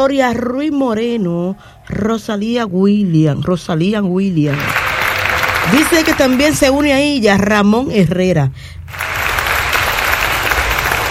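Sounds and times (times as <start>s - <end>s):
speech: 0.0s - 4.8s, 5.6s - 9.1s
audience applause for birthday celebrants: 4.5s - 6.6s, 8.9s - 11.0s.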